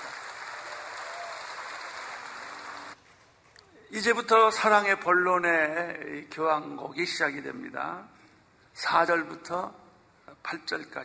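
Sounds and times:
audience applause: 0.0s - 3.0s
speech: 3.9s - 8.2s, 8.8s - 11.0s.

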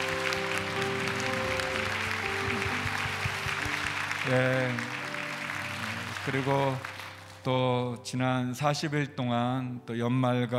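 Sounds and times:
audience applause: 0.0s - 7.5s
speech: 4.3s - 5.0s, 6.3s - 10.5s.

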